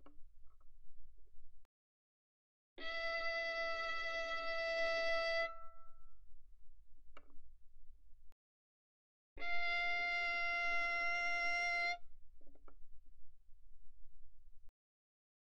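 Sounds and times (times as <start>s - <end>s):
violin arco mezzo forte on the G string: 2.8s - 6.1s, 9.4s - 12.0s.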